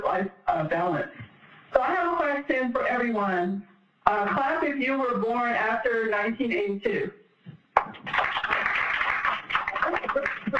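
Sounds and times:
speech: 0.2s - 7.2s
audience clapping: 7.8s - 10.5s.

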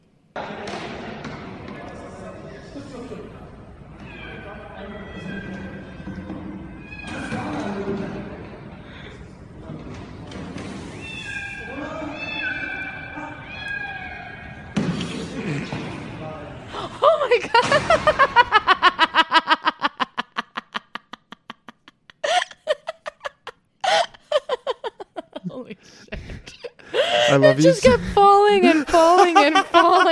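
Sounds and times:
cat meowing in a played video: 4.0s - 7.6s, 11.0s - 14.8s
laughter: 16.8s - 30.1s
speech: 27.6s - 30.1s.

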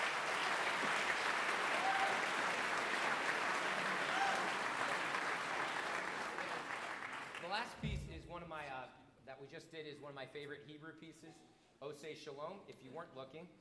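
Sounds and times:
applause: 0.0s - 7.8s
speech: 7.6s - 13.5s.

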